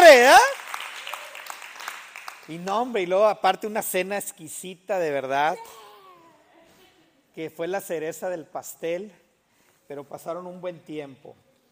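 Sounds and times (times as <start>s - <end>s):
loud applause: 0.0s - 2.6s
speech: 0.1s - 0.6s, 2.5s - 5.8s, 7.4s - 9.2s, 9.9s - 11.4s.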